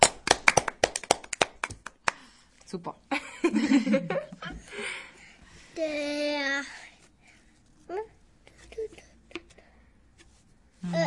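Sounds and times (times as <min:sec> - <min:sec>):
hands clapping: 0:00.0 - 0:02.3
speech: 0:02.7 - 0:05.0, 0:05.8 - 0:06.8.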